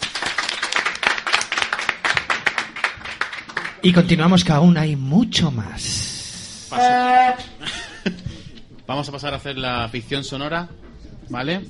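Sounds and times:
audience applause: 0.0 - 3.8
speech: 3.8 - 6.0, 6.7 - 8.2, 8.9 - 11.6
laughter: 7.4 - 8.9.

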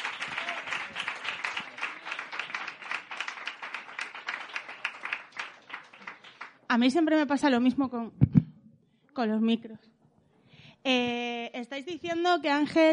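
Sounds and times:
audience applause: 0.0 - 6.6
speech: 6.7 - 8.3, 9.2 - 9.9, 10.8 - 12.9.

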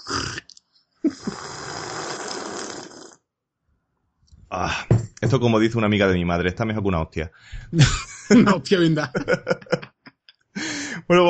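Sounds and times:
person sipping linden tea: 0.0 - 3.2
speech: 4.5 - 9.7, 11.1 - 11.2
laughter: 7.7 - 11.1.

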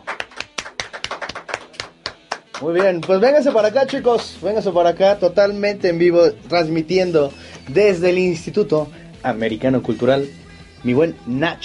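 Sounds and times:
loud applause: 0.0 - 4.4
speech: 2.6 - 11.6.

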